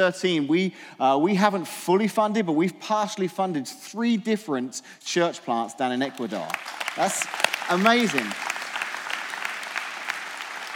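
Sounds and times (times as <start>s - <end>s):
speech: 0.0s - 8.5s
audience round of applause: 6.2s - 10.7s.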